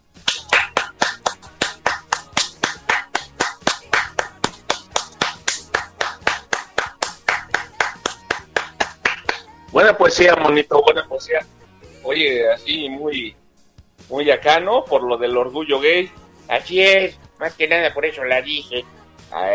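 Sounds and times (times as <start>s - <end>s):
applause: 0.2s - 9.5s
speech: 9.9s - 13.4s, 14.1s - 19.5s.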